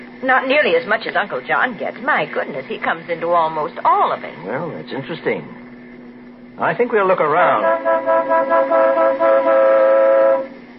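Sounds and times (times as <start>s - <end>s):
speech: 0.2s - 5.6s, 6.6s - 9.9s
car horn honking: 7.6s - 10.6s.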